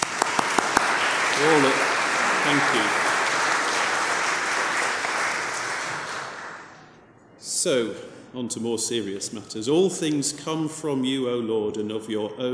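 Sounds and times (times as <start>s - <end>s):
audience applause: 0.0s - 6.7s
speech: 1.4s - 1.9s, 2.5s - 3.0s, 7.6s - 12.5s.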